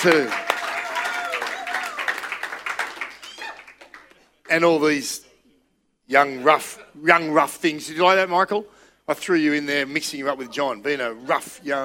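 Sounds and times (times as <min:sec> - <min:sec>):
speech: 0:00.0 - 0:00.4, 0:04.5 - 0:05.3, 0:06.1 - 0:11.8
crowd audience applause: 0:00.0 - 0:04.2.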